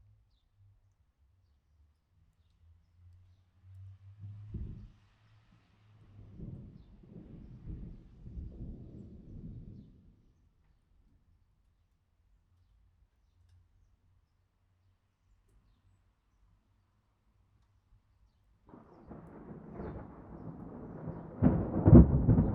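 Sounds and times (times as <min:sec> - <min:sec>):
thunder: 0:06.0 - 0:10.3, 0:18.7 - 0:22.5.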